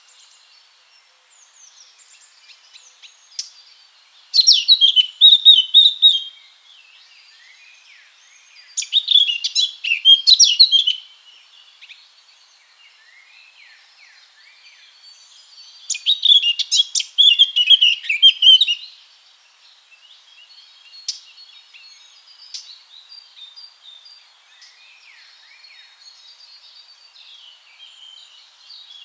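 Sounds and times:
Eurasian blackcap singing: 4.3 - 6.3, 8.6 - 11.1, 15.6 - 18.9.

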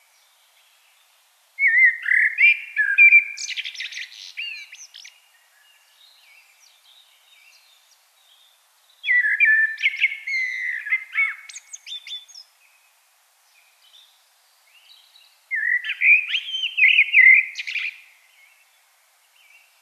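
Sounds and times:
common blackbird singing: 1.6 - 12.5, 14.7 - 18.7.

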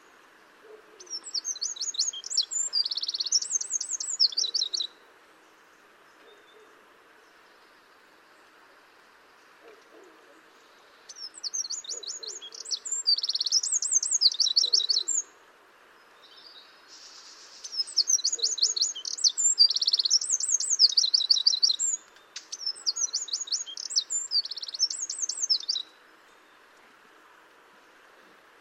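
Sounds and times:
faint hiss: 0.0 - 28.5
Eurasian wren song: 1.0 - 5.0, 10.6 - 15.3, 16.0 - 26.7.

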